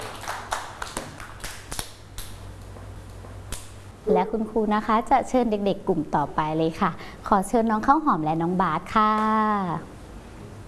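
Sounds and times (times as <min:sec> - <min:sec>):
children clapping hands: 0:00.0 - 0:02.4
speech: 0:04.1 - 0:09.9.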